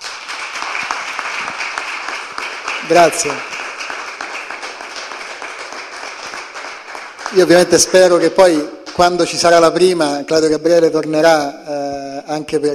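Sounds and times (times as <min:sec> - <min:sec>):
audience applause: 0:00.0 - 0:08.6
speech: 0:02.9 - 0:03.5, 0:07.3 - 0:12.7.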